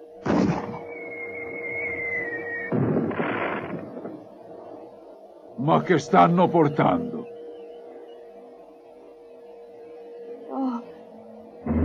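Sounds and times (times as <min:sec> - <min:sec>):
tracer flare rocket fired: 0:00.2 - 0:00.9, 0:02.7 - 0:04.2
sustained high whistling tone: 0:00.8 - 0:02.7
speech: 0:05.6 - 0:07.2.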